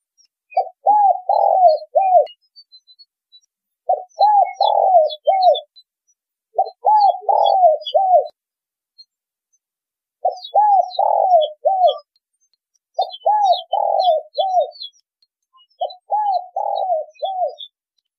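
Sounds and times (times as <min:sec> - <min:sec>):
spotted dove cooing: 0:00.5 - 0:02.3, 0:03.9 - 0:05.7, 0:06.6 - 0:08.4, 0:10.2 - 0:12.1, 0:13.0 - 0:14.9, 0:15.8 - 0:17.7.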